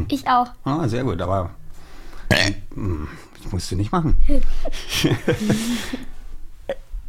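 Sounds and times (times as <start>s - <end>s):
speech: 0.0s - 1.6s, 2.3s - 6.8s
person burping on purpose: 2.3s - 3.1s.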